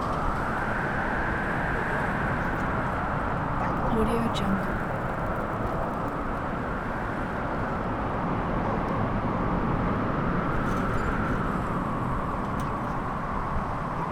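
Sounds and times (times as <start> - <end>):
winter suburb ambience: 0.0 - 14.1.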